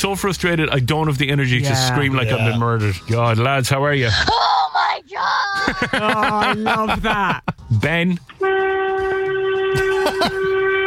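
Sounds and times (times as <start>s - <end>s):
speech: 0.0s - 8.7s
laughter: 5.5s - 7.6s
horn: 8.4s - 10.8s.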